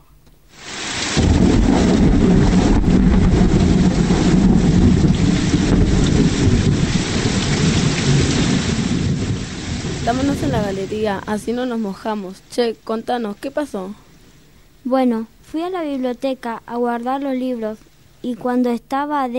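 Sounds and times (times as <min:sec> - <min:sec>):
wind: 0:00.0 - 0:19.3
rain: 0:00.3 - 0:18.3
thunder: 0:00.9 - 0:11.5
speech: 0:10.6 - 0:14.0, 0:14.8 - 0:19.3.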